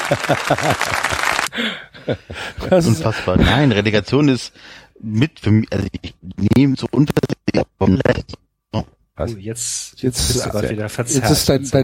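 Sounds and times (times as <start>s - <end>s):
applause sound effect: 0.0s - 1.5s
laughter: 0.0s - 3.9s
speech: 0.1s - 11.8s.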